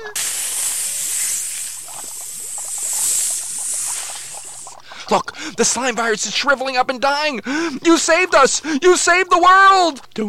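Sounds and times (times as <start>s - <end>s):
speech: 0.0s - 0.3s, 5.1s - 10.2s
spray hiss: 0.0s - 4.8s.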